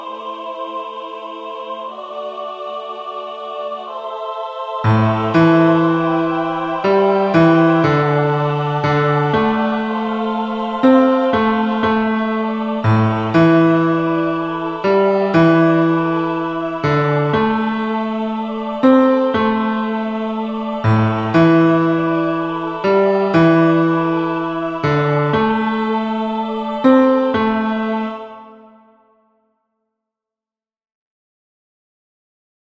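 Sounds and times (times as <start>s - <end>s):
low piano: 4.9s - 28.2s.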